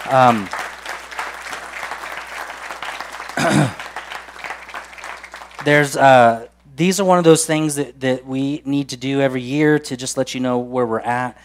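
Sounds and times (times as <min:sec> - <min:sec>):
speech: 0:00.0 - 0:00.6, 0:03.4 - 0:03.8, 0:05.6 - 0:11.4
audience applause: 0:00.0 - 0:06.0.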